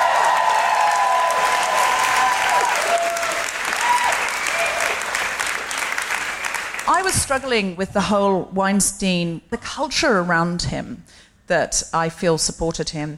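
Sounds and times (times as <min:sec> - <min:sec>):
audience clapping greeting a host on a live-show stage: 0:00.0 - 0:07.3
speech: 0:07.1 - 0:13.1.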